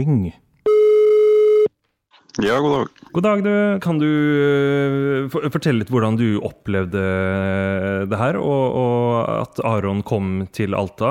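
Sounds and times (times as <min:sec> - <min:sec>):
speech: 0:00.0 - 0:00.4, 0:02.4 - 0:11.0
telephone dialing tone: 0:00.7 - 0:01.7.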